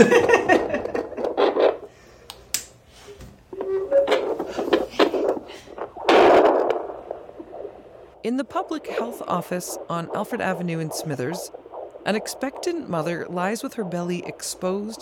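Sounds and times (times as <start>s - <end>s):
speech: 0.0s - 0.4s, 8.3s - 15.0s
fetal doppler static crackling and whooshing: 0.3s - 1.9s, 3.5s - 15.0s
brief warbling tones and clicks: 3.6s - 15.0s.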